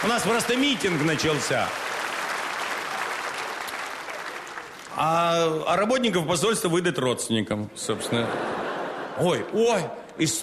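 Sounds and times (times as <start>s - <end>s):
speech: 0.0s - 2.0s, 5.0s - 8.6s, 9.2s - 10.4s
audience applause: 0.0s - 5.2s
laughter: 7.8s - 9.9s.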